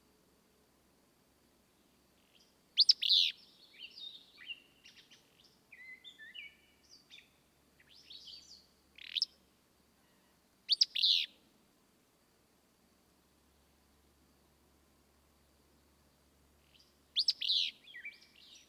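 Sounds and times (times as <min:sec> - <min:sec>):
willow flycatcher song: 0:01.8 - 0:09.4, 0:10.0 - 0:11.4, 0:15.4 - 0:18.6.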